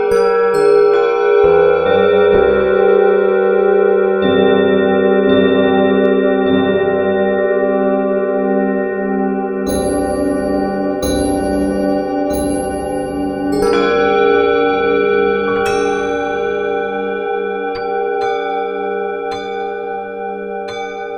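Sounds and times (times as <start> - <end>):
bells: 0.0 - 4.9, 9.4 - 21.1
Tibetan bowls: 0.0 - 5.2, 8.5 - 21.1
piano in nine eights 204 cent nonoctave tuning: 0.0 - 21.1.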